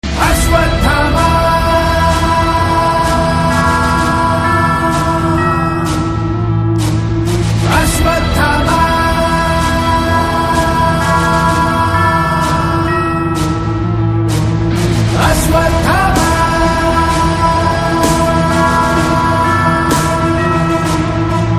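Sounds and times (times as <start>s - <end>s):
Telugu title background music ringtone: 0.0s - 21.5s.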